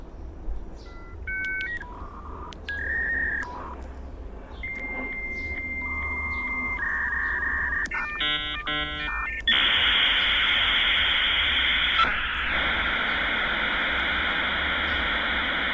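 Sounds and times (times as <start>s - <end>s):
dial-up modem connecting over a phone line: 0.9s - 3.8s, 4.6s - 15.7s.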